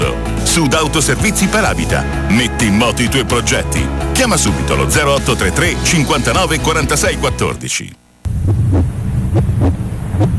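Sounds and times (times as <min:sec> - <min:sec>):
speech: 0:00.5 - 0:08.9
strong heartbeat: 0:08.3 - 0:10.3.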